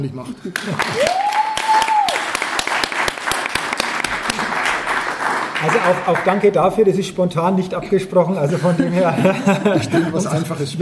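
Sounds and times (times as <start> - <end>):
speech: 0.0 - 1.4, 5.6 - 10.8
crowd applause: 0.5 - 6.6
laughter: 8.4 - 10.8.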